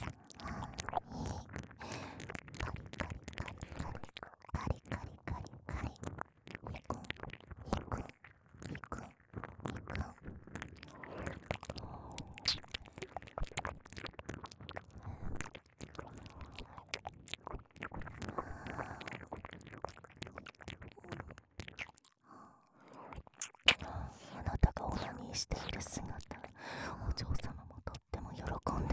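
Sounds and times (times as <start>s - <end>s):
whispering: 0.0s - 1.6s, 2.6s - 10.2s, 22.9s - 28.9s
ear licking sounds: 0.0s - 28.9s.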